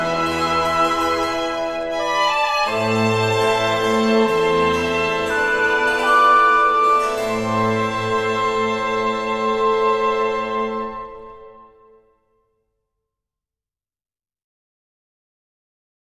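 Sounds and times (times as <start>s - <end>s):
harpsichord and chamber orchestra: 0.0s - 12.0s.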